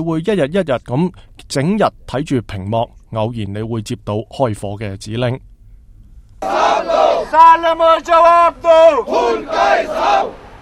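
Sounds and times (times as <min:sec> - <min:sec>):
speech: 0:00.0 - 0:05.5, 0:06.4 - 0:10.4
crowd of protesters chanting in unison: 0:06.4 - 0:10.6.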